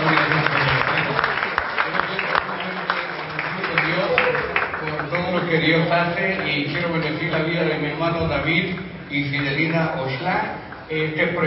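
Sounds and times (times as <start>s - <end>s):
audience applause: 0.0s - 6.8s
speech: 5.6s - 11.4s.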